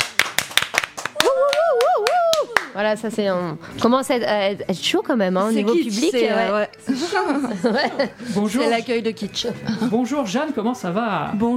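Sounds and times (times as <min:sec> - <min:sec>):
audience clapping loudly in a quick steady rhythm: 0:00.0 - 0:02.8
speech: 0:02.8 - 0:11.5
laughter: 0:06.9 - 0:08.6.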